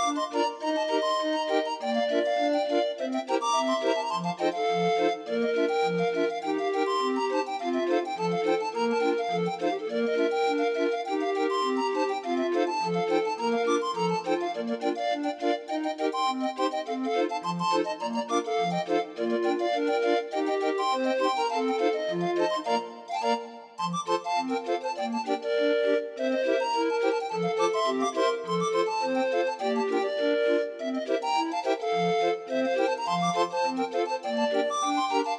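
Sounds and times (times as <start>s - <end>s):
grind organ playing a pipe organ rag: 0.0s - 35.3s.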